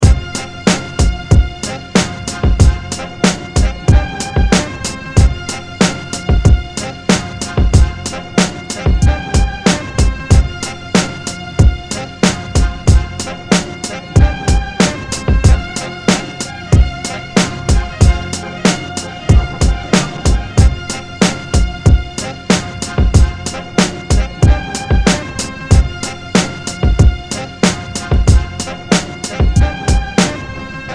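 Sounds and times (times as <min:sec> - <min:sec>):
instrumental music: 0:00.0 - 0:30.9.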